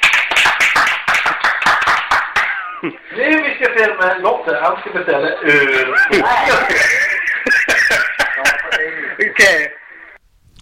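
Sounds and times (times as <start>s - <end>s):
applause: 0.0s - 2.6s
speech: 2.8s - 7.0s, 9.4s - 9.8s
laughter: 5.4s - 9.6s.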